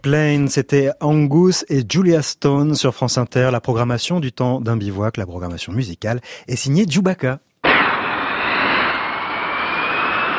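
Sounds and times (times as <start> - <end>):
speech: 0.0 - 7.5
Mirage IIIC test jet aircraft roaring during a speed record attempt at Istres: 7.6 - 10.3.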